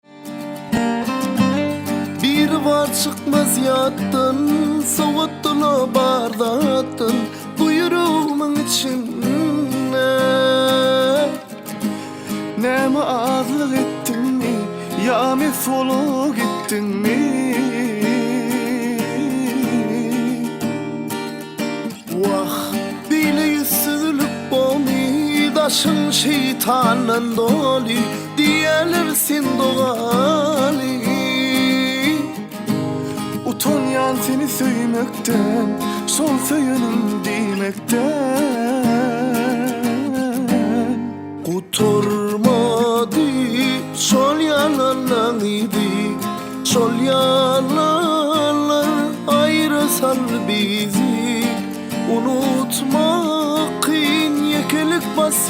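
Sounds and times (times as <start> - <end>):
guitar: 0.0 - 55.4.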